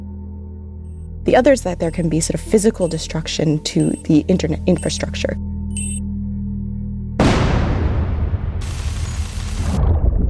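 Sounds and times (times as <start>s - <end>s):
speech: 1.2s - 5.9s
shelling explosions: 7.2s - 10.2s.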